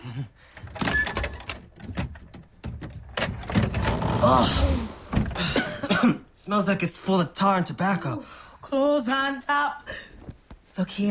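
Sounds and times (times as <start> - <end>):
speech: 0.2 - 0.6, 4.2 - 4.7, 6.0 - 10.1, 10.8 - 11.1
old sea chest being opened in a pirate's room: 0.6 - 5.6
wooden knocks and scrapes of an old sea chest: 1.4 - 5.4.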